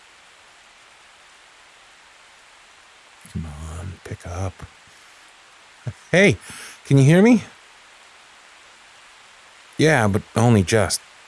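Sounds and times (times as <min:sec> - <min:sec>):
heavy storm rain: 0:00.0 - 0:11.2
speech: 0:03.2 - 0:04.8, 0:05.8 - 0:07.5, 0:09.8 - 0:11.2.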